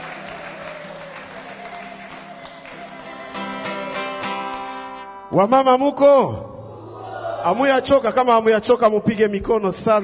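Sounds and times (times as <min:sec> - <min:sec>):
audience applause: 0:00.0 - 0:04.8
speech: 0:05.3 - 0:06.5, 0:07.4 - 0:10.0.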